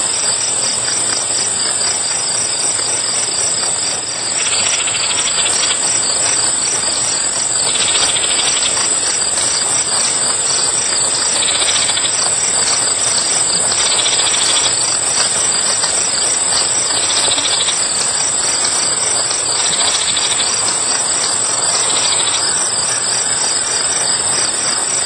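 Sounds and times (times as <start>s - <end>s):
grasshopper stridulation chorus: 0.0s - 25.0s.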